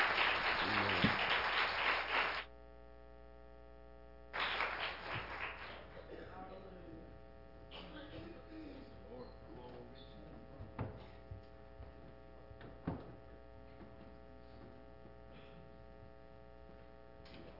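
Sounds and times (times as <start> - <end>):
crowd applauding: 0.0 - 2.5, 4.3 - 6.2
steady electrical hum: 0.0 - 17.5.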